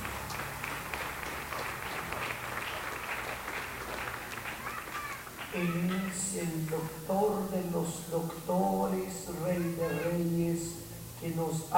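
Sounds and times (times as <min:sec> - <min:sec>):
applause from a large audience: 0:00.0 - 0:06.8
speech: 0:05.6 - 0:11.7.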